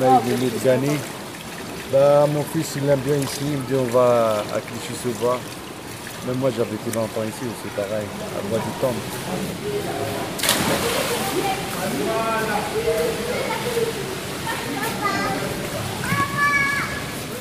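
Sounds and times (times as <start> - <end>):
speech: 0.0 - 1.2, 1.9 - 5.6, 6.2 - 14.2
swimming pool water splashing: 0.0 - 17.4
children shouting and playing at the Rosa Parks pool: 10.7 - 17.4.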